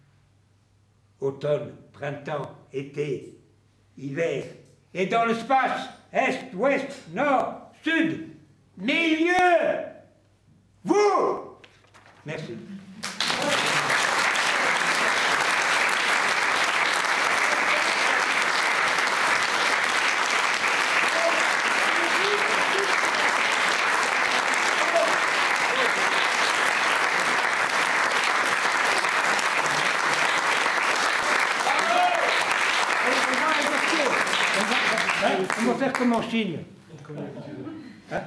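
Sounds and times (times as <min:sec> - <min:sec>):
speech: 0:01.2 - 0:03.4, 0:04.0 - 0:09.8, 0:10.8 - 0:11.4, 0:12.2 - 0:12.8
audience applause: 0:13.0 - 0:36.2.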